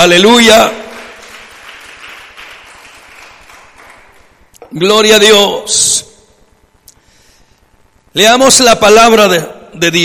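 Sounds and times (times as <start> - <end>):
speech: 0.0 - 0.8, 4.7 - 6.1, 8.2 - 10.0
audience applause: 0.7 - 4.4.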